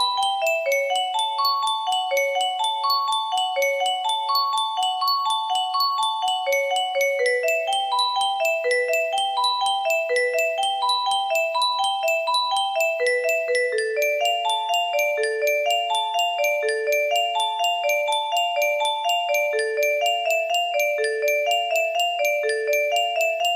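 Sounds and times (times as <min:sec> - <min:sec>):
music box melody in F: 0:00.0 - 0:23.5.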